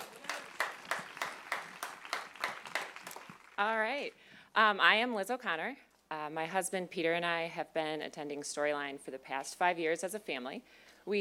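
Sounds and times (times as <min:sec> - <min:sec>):
audience applause: 0:00.0 - 0:03.8
speech: 0:03.6 - 0:11.1.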